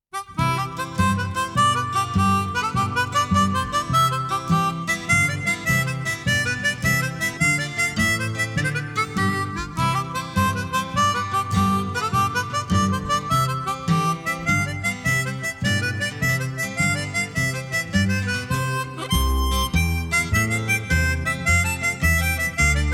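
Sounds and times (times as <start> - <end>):
jig tune: 0.1 - 22.9.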